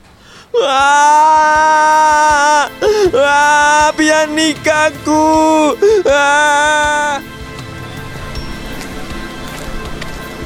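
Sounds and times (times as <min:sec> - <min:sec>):
speech: 0:00.6 - 0:01.6, 0:03.9 - 0:07.3
girl crying loudly: 0:00.6 - 0:03.4.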